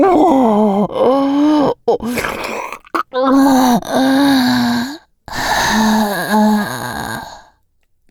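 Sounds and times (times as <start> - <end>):
ASMR fellatio and vacuum sucking sounds with hand stimulation: 0.1 - 7.5.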